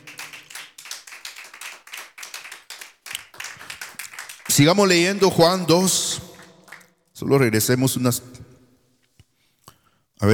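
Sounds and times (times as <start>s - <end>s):
audience clapping hands: 0.0s - 7.0s
speech: 4.6s - 6.2s, 7.2s - 8.5s.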